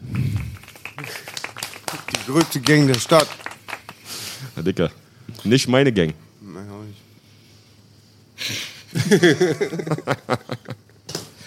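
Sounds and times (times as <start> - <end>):
applause: 0.0 - 4.2
speech: 2.3 - 3.5, 4.6 - 6.2, 9.1 - 10.4
laughter: 8.9 - 10.8.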